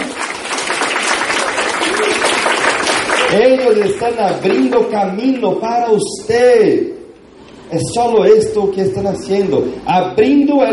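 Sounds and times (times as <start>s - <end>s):
applause: 0.0s - 5.5s
speech: 3.3s - 7.0s, 7.7s - 10.7s.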